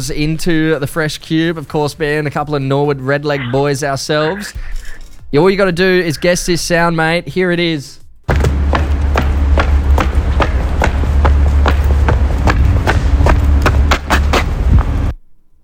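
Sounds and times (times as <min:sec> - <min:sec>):
speech: 0:00.0 - 0:08.0
football boots walking on pavement down the race onto the field: 0:08.3 - 0:15.1
low rumble: 0:08.3 - 0:15.2.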